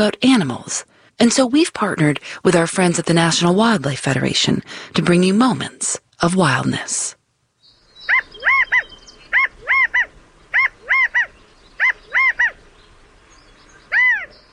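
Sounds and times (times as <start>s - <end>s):
speech: 0.0s - 7.2s
California quail calling: 7.9s - 12.7s, 13.8s - 14.5s.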